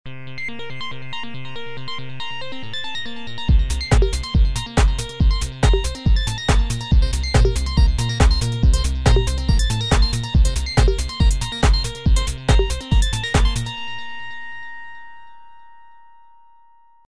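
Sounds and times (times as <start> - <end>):
joystick jingles and loops: 3.5 - 13.7.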